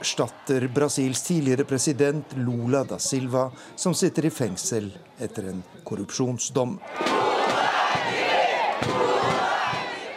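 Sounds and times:
speech: 0.0s - 8.2s
PT supporters chanting at an election rally in Rio: 6.8s - 10.1s.

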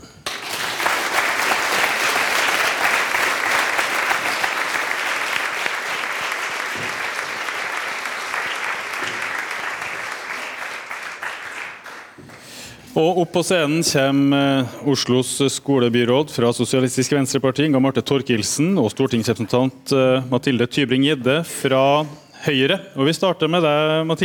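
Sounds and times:
audience clapping: 0.0s - 12.6s
speech: 13.0s - 24.2s.

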